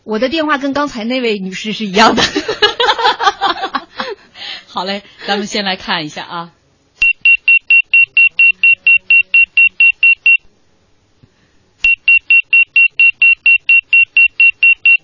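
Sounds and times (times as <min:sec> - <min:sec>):
speech: 0:00.1 - 0:03.7, 0:04.8 - 0:06.6
laughter: 0:02.1 - 0:04.3
pager beeping: 0:07.0 - 0:10.4, 0:11.8 - 0:15.0.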